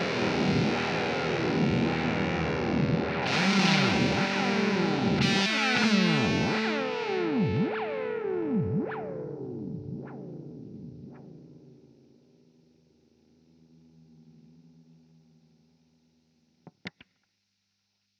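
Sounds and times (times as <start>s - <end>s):
Teisco electric guitar: 0.0s - 11.8s.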